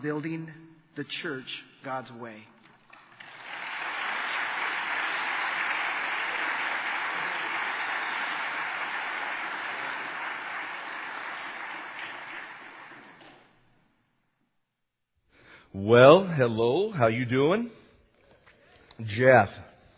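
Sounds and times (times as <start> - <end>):
speech: 0.0 - 2.6, 15.7 - 17.8, 19.0 - 19.7
church audience applauding a visiting pastor's welcome: 3.0 - 13.6.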